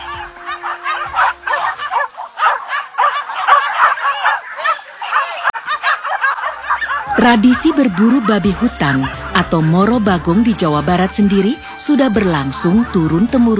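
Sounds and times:
hunting dogs barking: 0.0s - 10.2s
speech: 7.2s - 13.5s.

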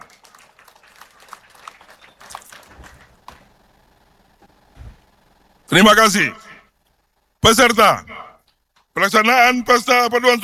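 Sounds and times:
crowd audience applause: 0.0s - 3.5s
speech: 5.7s - 6.4s, 7.4s - 8.1s, 9.0s - 10.4s.

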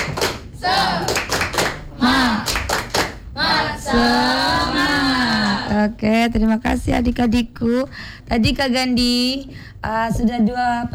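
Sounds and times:
group rhythmic clapping: 0.0s - 6.0s
voices chanting: 0.0s - 6.0s
speech: 5.8s - 10.9s.

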